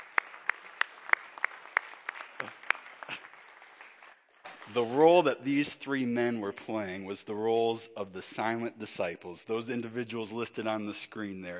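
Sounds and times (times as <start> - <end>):
audience applause: 0.0 - 4.8
speech: 4.7 - 11.5.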